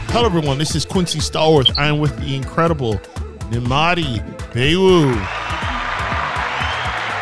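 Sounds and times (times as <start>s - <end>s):
speech: 0.2s - 5.4s
crowd applause: 5.0s - 7.1s.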